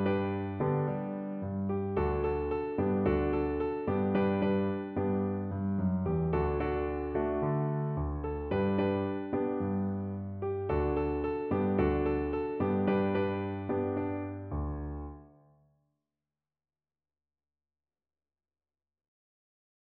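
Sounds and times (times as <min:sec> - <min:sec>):
piano: 0:00.0 - 0:15.7.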